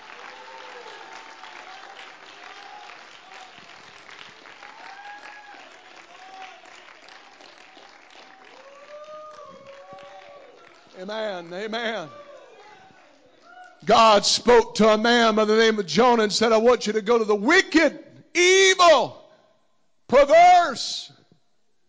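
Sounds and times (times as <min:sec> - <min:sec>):
people clapping: 0:00.0 - 0:14.0
speech: 0:11.0 - 0:12.2, 0:13.8 - 0:19.2, 0:20.1 - 0:21.1.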